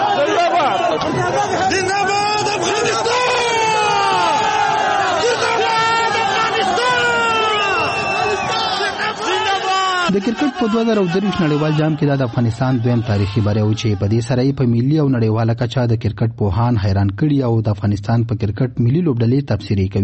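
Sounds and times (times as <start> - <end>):
crowd chanting slogans celebrating Afghanistan's 2023 Cricket World Cup victory: 0.0 - 10.5
speech: 10.3 - 20.0.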